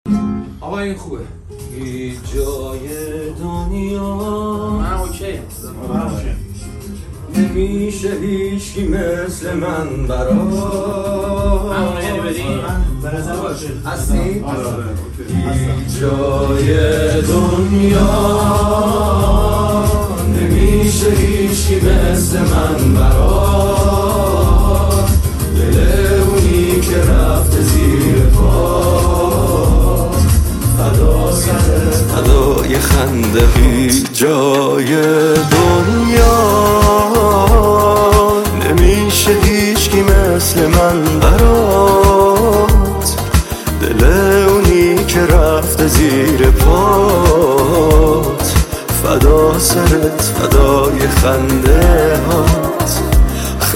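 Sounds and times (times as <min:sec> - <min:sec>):
guitar: 0:00.1 - 0:53.7.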